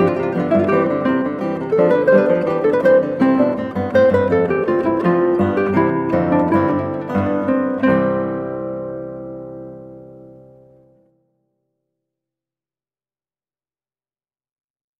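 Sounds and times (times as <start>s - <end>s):
guitar: 0.0s - 11.5s.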